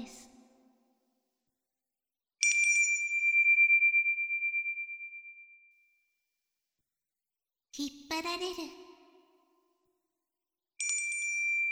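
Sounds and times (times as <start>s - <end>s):
small bell ringing: 2.4s - 5.8s, 10.8s - 11.7s
speech: 7.8s - 8.8s.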